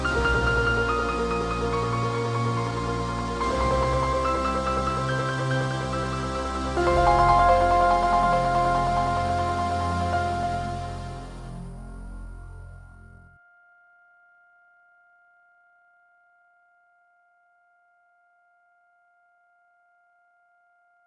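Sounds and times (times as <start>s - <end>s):
magic harp: 0.1s - 13.2s.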